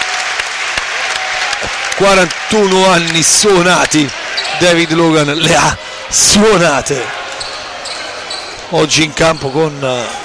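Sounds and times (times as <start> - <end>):
crowd applause in a basketball arena: 0.0 - 6.3
speech: 1.6 - 7.2, 8.7 - 10.2.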